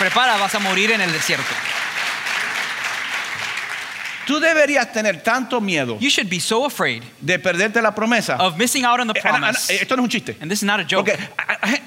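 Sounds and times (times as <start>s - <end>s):
speech: 0.0s - 1.8s, 4.3s - 11.8s
audience clapping: 0.0s - 5.0s.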